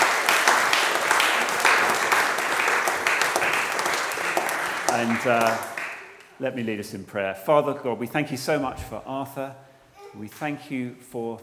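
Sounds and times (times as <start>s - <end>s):
audience applause: 0.0s - 6.2s
speech: 5.0s - 5.7s, 6.4s - 11.4s.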